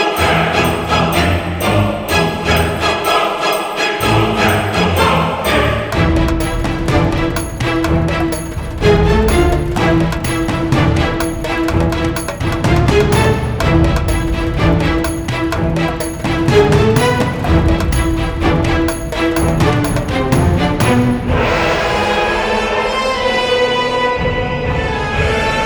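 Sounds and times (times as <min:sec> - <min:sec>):
Persian battle sounds: 0:00.0 - 0:25.6.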